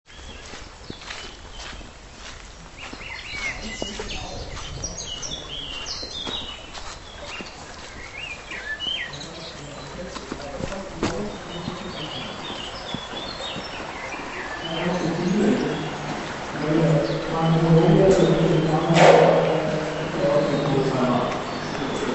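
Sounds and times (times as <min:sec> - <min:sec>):
railway tunnel: 0:04.9 - 0:22.1.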